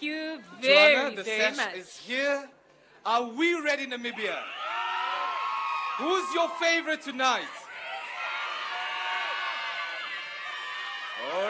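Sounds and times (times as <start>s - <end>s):
speech: 0.4s - 4.6s, 6.0s - 7.6s, 11.2s - 11.4s
audience applause and cheering: 4.4s - 11.4s.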